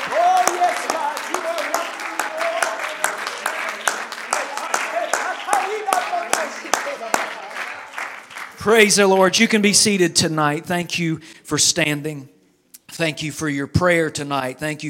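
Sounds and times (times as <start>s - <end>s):
audience shouting: 0.0s - 6.6s
audience clapping: 0.0s - 9.6s
speech: 8.7s - 12.4s, 13.0s - 14.8s.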